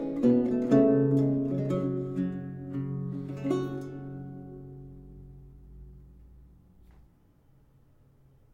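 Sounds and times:
courante piece in G: 0:00.0 - 0:06.6.

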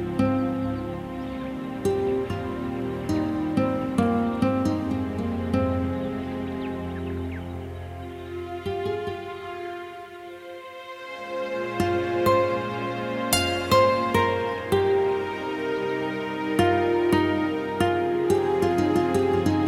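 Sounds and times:
Amazon rainforest ambience: 0:00.0 - 0:19.6.

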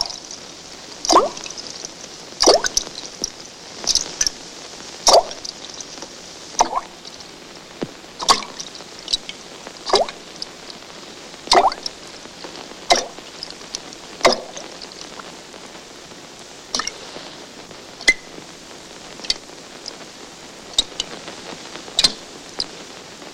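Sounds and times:
dripping: 0:00.0 - 0:00.4, 0:01.0 - 0:03.3, 0:05.0 - 0:05.9, 0:06.6 - 0:07.2, 0:08.2 - 0:10.2, 0:11.5 - 0:12.0, 0:12.9 - 0:13.5, 0:14.2 - 0:15.2, 0:16.7 - 0:17.0, 0:22.0 - 0:22.3
splashing: 0:00.0 - 0:00.4, 0:01.0 - 0:03.3, 0:05.1 - 0:05.8, 0:06.6 - 0:07.1, 0:08.2 - 0:09.3, 0:09.9 - 0:10.2, 0:11.5 - 0:12.0, 0:12.9 - 0:13.5, 0:14.2 - 0:15.1, 0:16.7 - 0:17.1.

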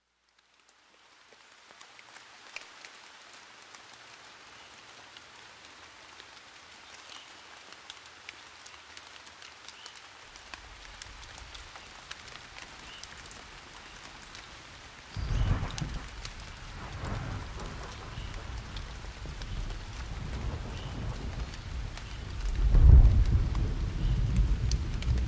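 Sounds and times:
thunder: 0:15.2 - 0:25.2.

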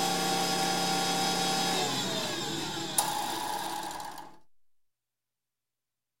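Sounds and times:
motorized shop tool shaper turning on and running: 0:00.2 - 0:04.4.

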